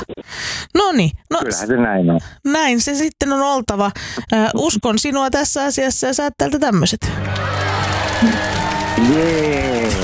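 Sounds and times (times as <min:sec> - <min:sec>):
speech: 0:00.9 - 0:07.6, 0:08.2 - 0:08.5, 0:09.1 - 0:09.6
audience clapping: 0:07.1 - 0:10.0
audience whoops: 0:07.2 - 0:10.0.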